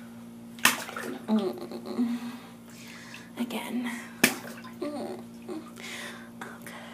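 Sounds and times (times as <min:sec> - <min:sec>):
wet slapping in water: 0:00.6 - 0:01.4, 0:04.2 - 0:04.8
speech: 0:01.3 - 0:02.2, 0:03.4 - 0:04.6.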